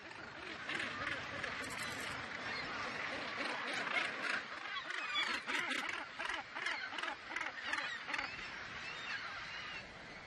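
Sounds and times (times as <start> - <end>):
arctic gulls squabbling in a nesting colony: 0.0 - 9.9.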